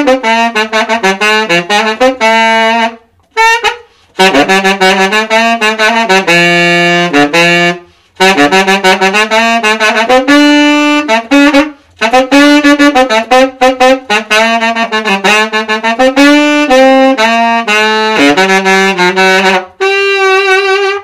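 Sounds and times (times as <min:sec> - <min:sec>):
saxophone: 0:00.0 - 0:21.0.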